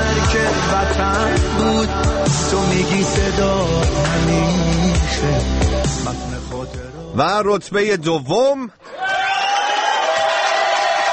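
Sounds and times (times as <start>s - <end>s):
speech: 0.7s - 9.0s
audience clapping: 9.0s - 11.1s.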